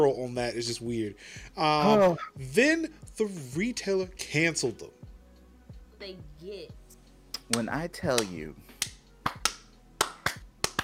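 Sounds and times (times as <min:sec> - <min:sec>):
speech: 0:00.0 - 0:05.0, 0:06.0 - 0:06.8, 0:07.5 - 0:08.8
hand claps: 0:07.4 - 0:10.8.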